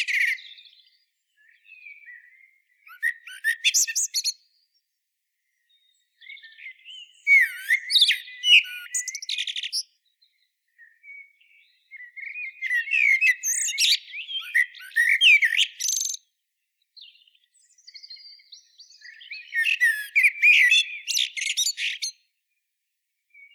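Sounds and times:
Eurasian blackbird singing: 0.0 - 4.8, 5.4 - 16.3, 17.0 - 22.3, 23.3 - 23.5.

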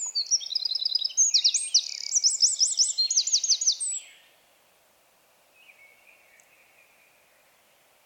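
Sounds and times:
Eurasian wren Troglodytes troglodytes singing: 0.0 - 4.2.

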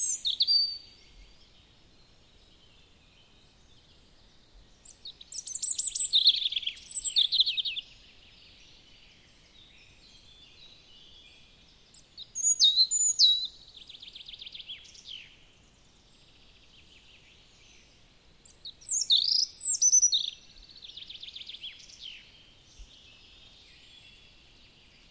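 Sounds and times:
European robin singing: 0.0 - 25.0.

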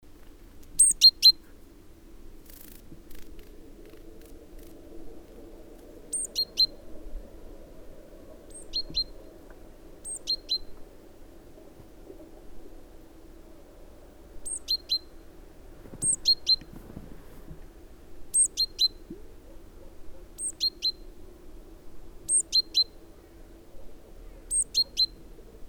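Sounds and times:
low hum: 0.0 - 24.5
Great tit calls: 0.8 - 1.5, 6.1 - 6.8, 8.5 - 9.2, 10.0 - 10.8, 14.4 - 15.2, 16.0 - 16.7, 18.3 - 19.0, 20.3 - 21.1, 22.3 - 23.0, 24.3 - 25.2.

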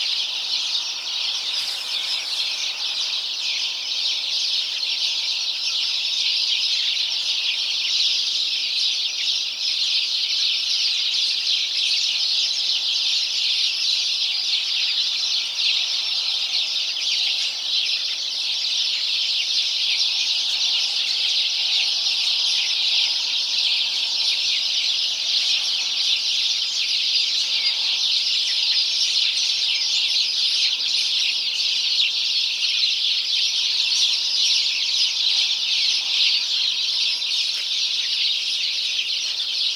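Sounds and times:
house sparrows chirping together: 0.0 - 39.7.

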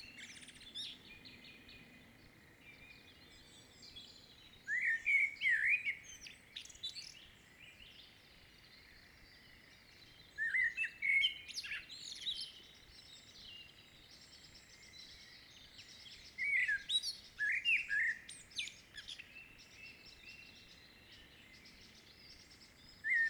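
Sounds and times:
common blackbird song: 0.0 - 23.2.

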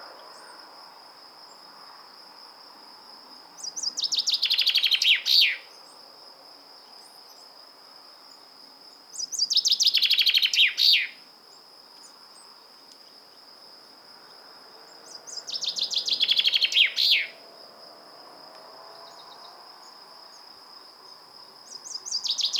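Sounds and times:
Common chaffinch song with descending and rattling trills: 3.6 - 5.6, 9.2 - 11.2, 15.2 - 17.4, 21.7 - 22.5.

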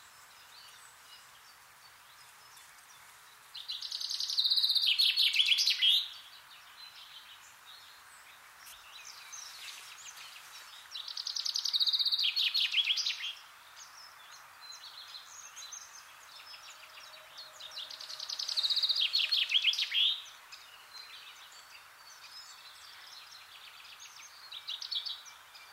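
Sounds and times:
common chaffinch song, fast trill dropping in pitch with sharp terminal flourish: 0.0 - 25.7.

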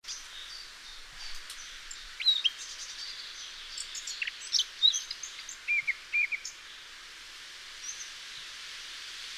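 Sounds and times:
Eurasian blackcap Sylvia atricapilla warbling run of chirps and whistles: 0.0 - 6.5.

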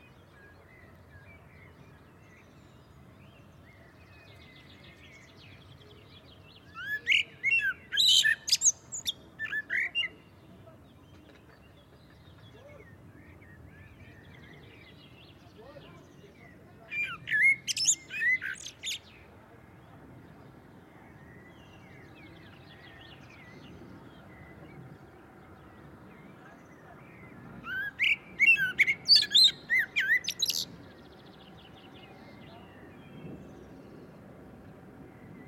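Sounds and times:
common blackbird song: 0.0 - 11.0, 11.6 - 19.3, 21.1 - 34.0.

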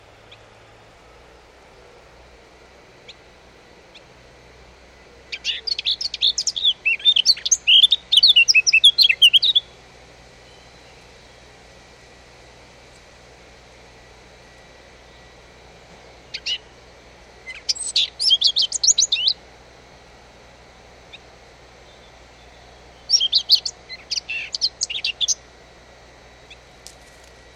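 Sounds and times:
Eurasian blackcap song: 5.0 - 9.8, 10.4 - 11.4, 16.2 - 19.4, 21.9 - 25.4.

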